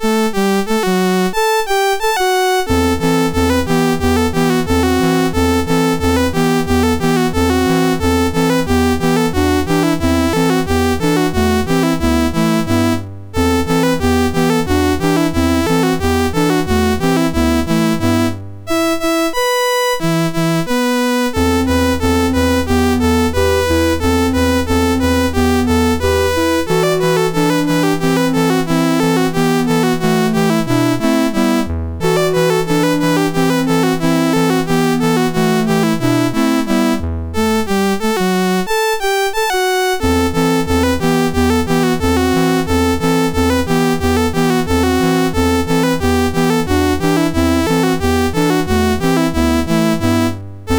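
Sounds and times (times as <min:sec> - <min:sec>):
MOS6581 SID chip synth sound: 0:00.0 - 0:50.7.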